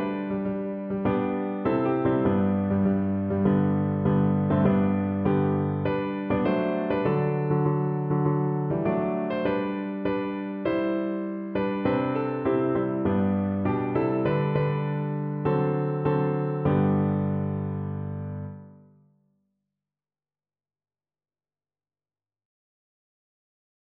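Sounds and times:
piano hymn: 0:00.0 - 0:18.9.

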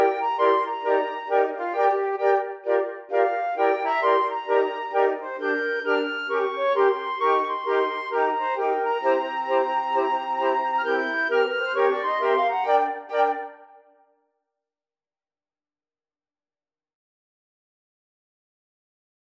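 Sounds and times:
flute choir: 0:00.0 - 0:14.0.

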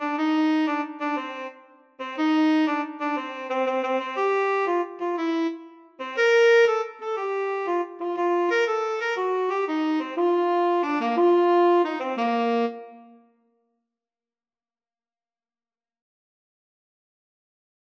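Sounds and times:
tenor saxophone duet: 0:00.0 - 0:13.3.

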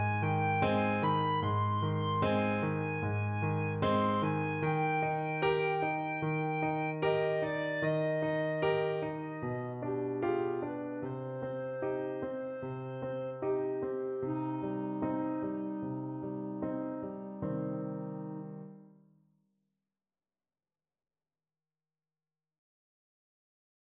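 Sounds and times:
flute and clarinet duet: 0:00.0 - 0:10.3, 0:10.9 - 0:17.7.

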